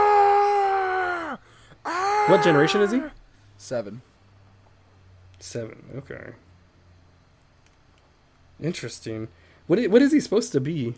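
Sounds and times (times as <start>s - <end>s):
man imitating a screaming Pokemon cry: 0.0s - 3.2s
speech: 2.3s - 4.1s, 5.4s - 6.5s, 8.6s - 10.9s.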